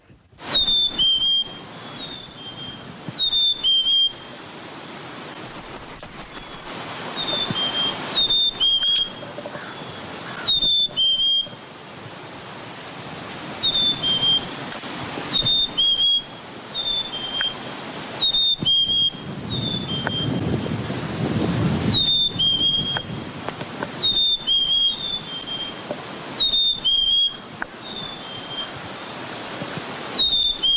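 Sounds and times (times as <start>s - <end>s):
rushing hiss: 0.0s - 30.7s
chickadee spring song: 0.4s - 4.5s, 5.3s - 11.6s, 13.6s - 14.6s, 15.3s - 20.7s, 21.8s - 23.2s, 23.9s - 30.7s.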